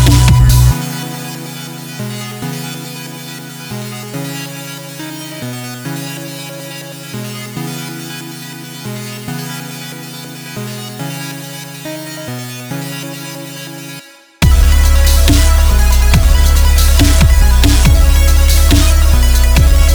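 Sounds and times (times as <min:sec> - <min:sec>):
wall of sawtooth synth waves: 0:00.0 - 0:01.9, 0:14.4 - 0:19.9.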